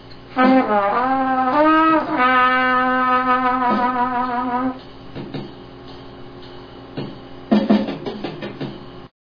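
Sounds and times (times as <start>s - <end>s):
blowing: 0.4s - 4.8s.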